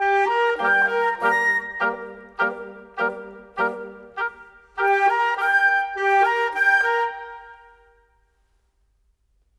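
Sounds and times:
orchestral wind instruments: 0:00.0 - 0:08.0.

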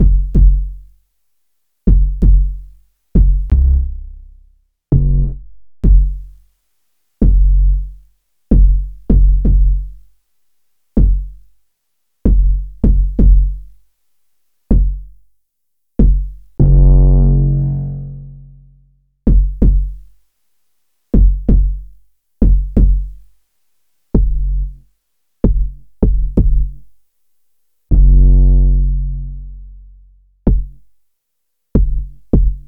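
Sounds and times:
bass: 0:00.0 - 0:01.0, 0:01.8 - 0:06.6, 0:07.2 - 0:10.2, 0:11.0 - 0:11.6, 0:12.2 - 0:13.8, 0:14.7 - 0:15.3, 0:16.0 - 0:20.2, 0:21.1 - 0:23.3, 0:24.1 - 0:27.0, 0:27.9 - 0:31.0, 0:31.8 - 0:32.6.

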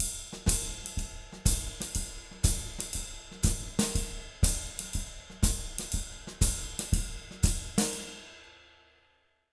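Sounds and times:
jazz Latin shuffle drum loop: 0:00.0 - 0:08.1.

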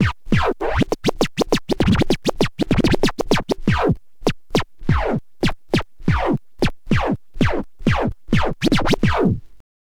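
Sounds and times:
vinyl scratches mix: 0:00.0 - 0:09.5.

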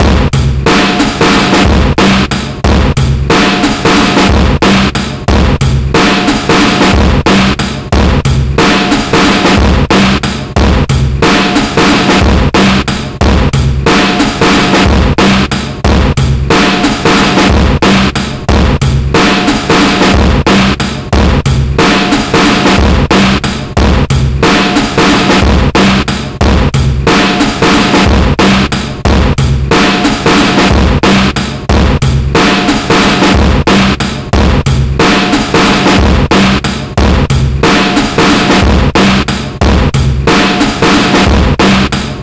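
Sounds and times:
dirty drum breaks at 91 BPM: 0:00.0 - 0:42.2.

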